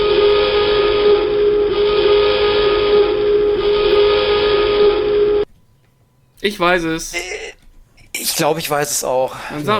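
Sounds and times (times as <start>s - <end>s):
alarm sound: 0.0s - 5.5s
speech: 6.4s - 7.3s, 8.4s - 9.7s.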